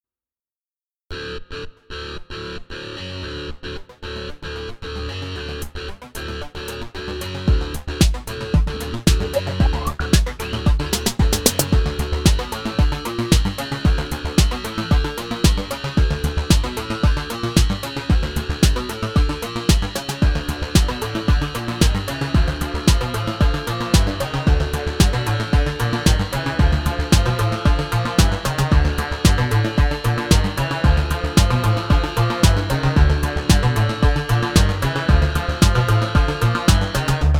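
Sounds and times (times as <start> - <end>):
electroshock beats: 7.5 - 37.3.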